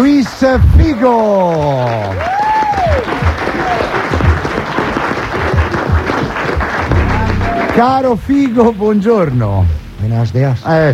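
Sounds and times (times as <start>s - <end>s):
speech: 0.0s - 2.3s, 7.8s - 10.9s
audience applause: 0.0s - 8.2s.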